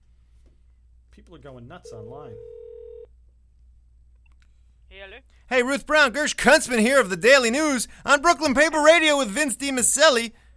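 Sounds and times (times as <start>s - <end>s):
speech: 1.2s - 2.7s, 4.9s - 10.4s
telephone number being dialed: 1.9s - 3.1s.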